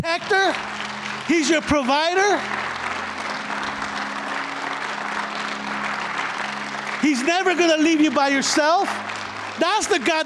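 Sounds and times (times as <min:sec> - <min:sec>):
speech: 0:00.0 - 0:02.6, 0:07.0 - 0:10.2
audience clapping: 0:00.0 - 0:10.2.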